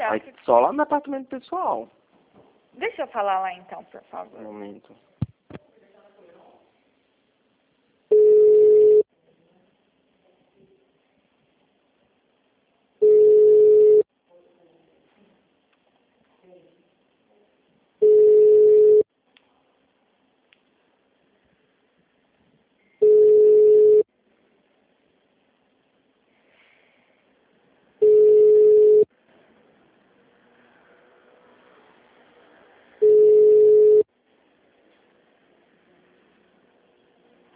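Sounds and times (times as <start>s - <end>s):
speech: 0.1s - 2.0s, 2.8s - 5.1s
telephone busy signal: 8.1s - 9.0s, 13.0s - 14.0s, 18.0s - 19.0s, 23.0s - 24.1s, 28.0s - 29.1s, 33.0s - 34.1s.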